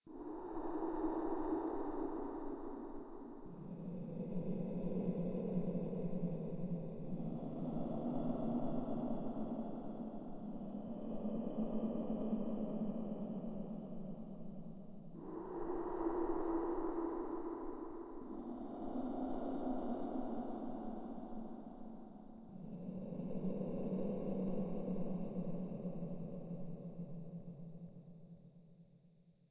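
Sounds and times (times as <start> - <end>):
wind: 0.0 - 28.6.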